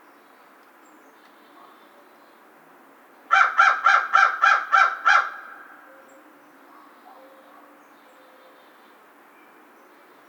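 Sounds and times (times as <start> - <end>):
American crow cawing: 3.3 - 5.8.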